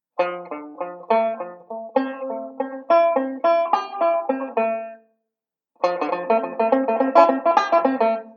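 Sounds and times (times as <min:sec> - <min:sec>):
banjo playing a ii V pattern: 0:00.2 - 0:05.1, 0:05.8 - 0:08.3.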